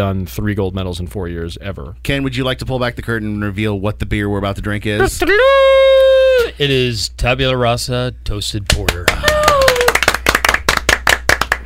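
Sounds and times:
speech: 0.0 - 5.9, 6.6 - 9.0
sparse golf clap from a small audience at a beer tasting: 8.7 - 11.6.

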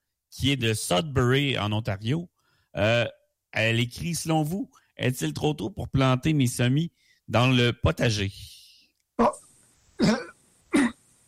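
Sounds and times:
speech: 0.3 - 8.6, 9.2 - 9.4, 10.0 - 10.2
man clearing throat: 9.2 - 11.0.

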